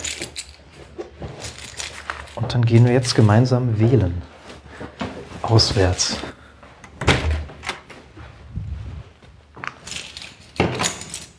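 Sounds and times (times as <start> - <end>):
keys jangling: 0.0 - 2.5, 9.8 - 11.3
speech: 2.4 - 4.3, 5.5 - 6.3.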